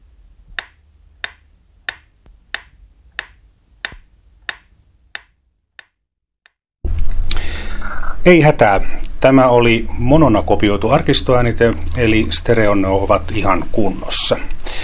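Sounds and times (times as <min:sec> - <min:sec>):
metronome ticking from the right speaker: 0:00.5 - 0:06.0
speech: 0:08.2 - 0:14.6.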